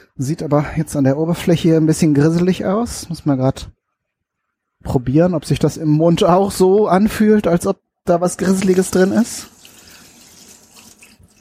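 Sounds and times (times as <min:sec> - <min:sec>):
speech: 0:00.2 - 0:03.8, 0:04.8 - 0:09.6
running tap water splashing over an immersion blender being rinsed: 0:08.5 - 0:11.4.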